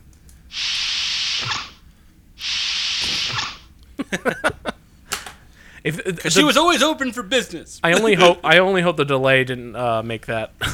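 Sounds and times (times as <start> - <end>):
swoosh of a door opening and closing: 0.6 - 1.8, 2.5 - 3.7
laughter: 4.0 - 4.8, 7.9 - 8.4
speech: 4.1 - 4.5, 5.8 - 10.7.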